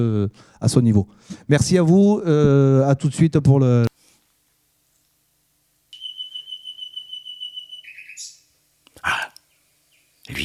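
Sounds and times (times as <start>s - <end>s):
speech: 0.0s - 3.9s
nightingale singing: 5.9s - 8.6s, 9.4s - 10.4s.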